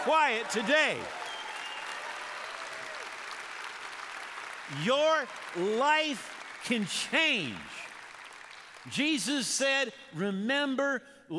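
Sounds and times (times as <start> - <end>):
speech: 0.0 - 1.2, 4.7 - 7.8, 8.8 - 11.3
audience applause: 0.0 - 9.0.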